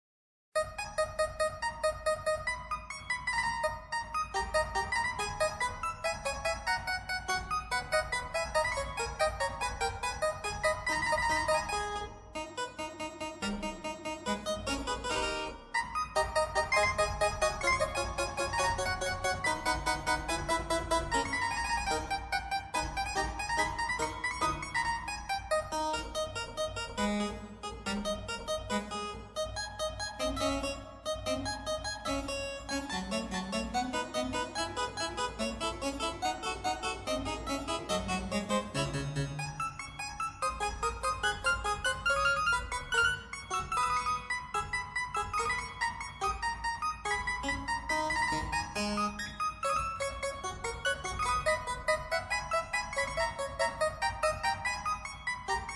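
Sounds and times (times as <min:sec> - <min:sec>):
solo harpsichord prelude: 0:00.6 - 0:55.7.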